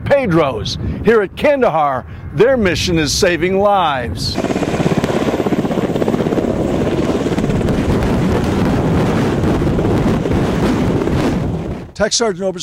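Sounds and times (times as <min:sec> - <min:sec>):
speech: 0:00.2 - 0:04.8, 0:12.0 - 0:12.6
HH-60 medevac helicopter: 0:04.3 - 0:11.9.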